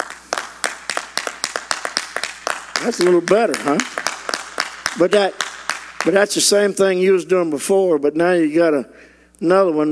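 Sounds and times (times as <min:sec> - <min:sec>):
sharp hand claps: 0:00.0 - 0:06.6
speech: 0:02.8 - 0:04.0, 0:05.0 - 0:05.4, 0:06.0 - 0:09.9.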